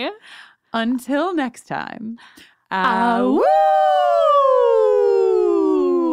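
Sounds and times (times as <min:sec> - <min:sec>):
speech: 0:00.0 - 0:04.3
person imitating a werewolf howl: 0:02.9 - 0:06.1.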